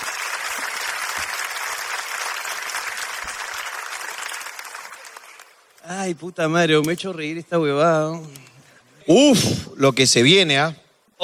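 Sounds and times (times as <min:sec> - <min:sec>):
audience applause: 0:00.0 - 0:05.8
speech: 0:05.9 - 0:11.2.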